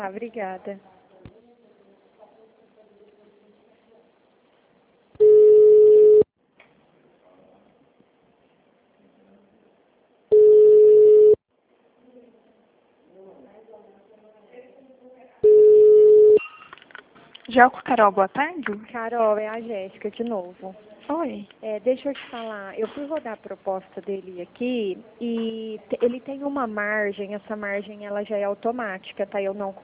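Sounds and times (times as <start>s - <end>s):
speech: 0.0s - 1.4s, 17.5s - 29.8s
telephone tone beeps after a dropped call: 5.2s - 6.3s, 10.3s - 11.4s, 15.4s - 16.5s.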